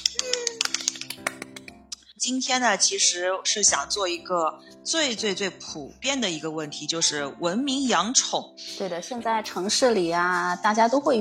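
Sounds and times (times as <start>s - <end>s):
person humming: 0.0s - 0.9s
hand clapping: 0.0s - 1.9s
speech: 2.2s - 11.2s.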